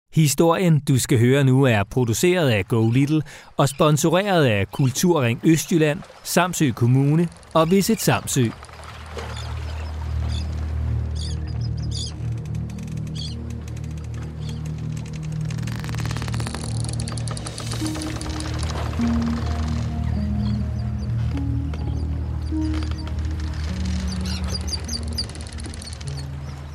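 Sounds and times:
speech: 0:00.2 - 0:09.4
ship timber creaking and groaning: 0:05.3 - 0:26.7
low rumble aboard a rocking ship: 0:08.5 - 0:26.7.

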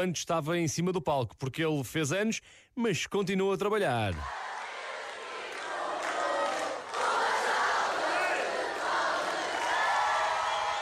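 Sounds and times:
speech: 0:00.0 - 0:04.4
concert audience in Alvéolos cheering to surprise a singer on his birthday: 0:04.2 - 0:10.7.

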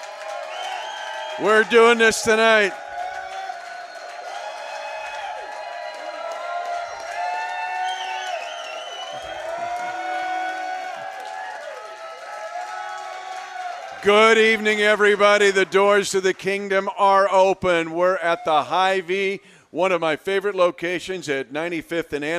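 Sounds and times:
sellout crowd cheering and applauding a victory: 0:00.0 - 0:17.0
speech: 0:01.4 - 0:02.8, 0:14.0 - 0:22.3.

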